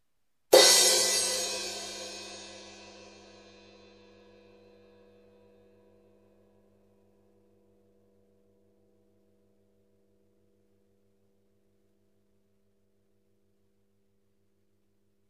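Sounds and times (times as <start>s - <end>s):
ZXT 18 crash cymbal: 0.5s - 4.4s.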